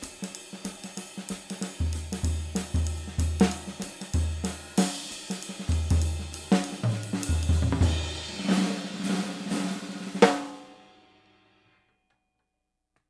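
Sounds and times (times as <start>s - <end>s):
65x14 Slingerland Radio King maple drum: 1.8s - 9.1s.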